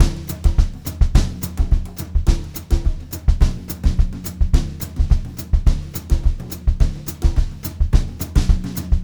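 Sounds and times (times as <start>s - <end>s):
brushed drum loop: 0.0s - 9.0s.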